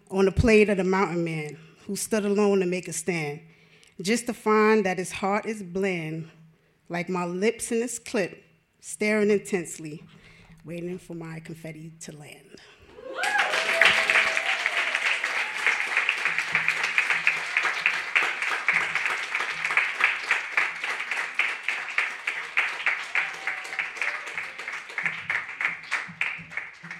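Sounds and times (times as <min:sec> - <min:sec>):
speech: 0:00.1 - 0:13.3
faint cheers: 0:12.9 - 0:18.3, 0:22.8 - 0:25.1
audience applause: 0:12.9 - 0:26.9.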